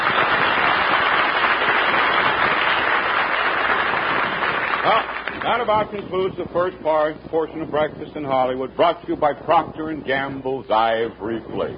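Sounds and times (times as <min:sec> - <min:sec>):
audience cheering and clapping: 0:00.0 - 0:05.4
speech: 0:04.8 - 0:11.7.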